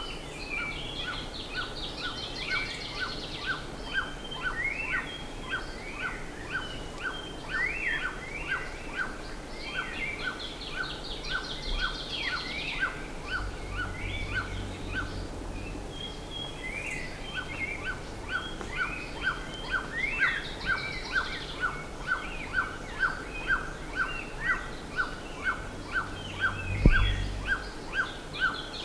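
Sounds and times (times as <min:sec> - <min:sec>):
birds chorusing: 0:00.0 - 0:28.8
low rumble: 0:11.5 - 0:28.8
low thump: 0:26.7 - 0:27.4.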